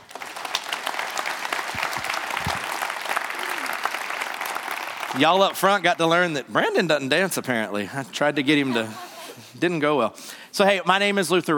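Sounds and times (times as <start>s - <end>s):
church audience applauding a guest speaker on Orphan Sunday: 0.0s - 5.9s
speech: 5.2s - 9.0s, 9.6s - 11.5s
laughter: 8.6s - 9.5s.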